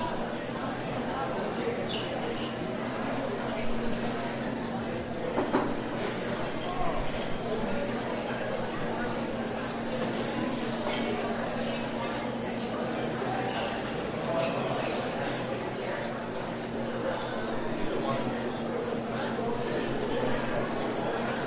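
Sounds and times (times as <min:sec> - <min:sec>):
dining hall ambience: 0:00.0 - 0:21.4.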